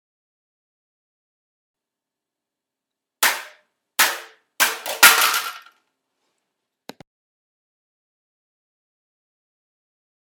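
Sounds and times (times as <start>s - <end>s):
saw falling: 3.2s - 5.7s.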